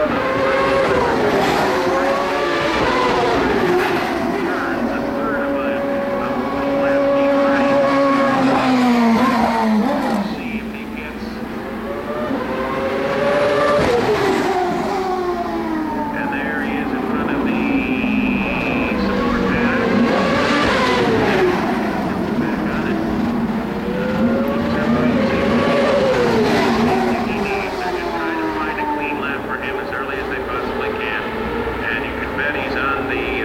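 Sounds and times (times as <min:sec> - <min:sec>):
turbocharged V8 IndyCar race cars roaring past at a street race: 0:00.0 - 0:33.4.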